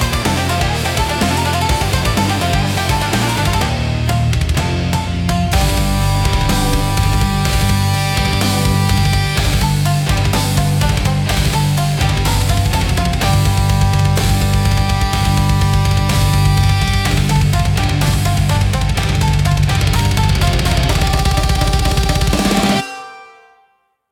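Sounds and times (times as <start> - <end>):
intense Japanese rock music with shamisen: 0.0 - 23.9.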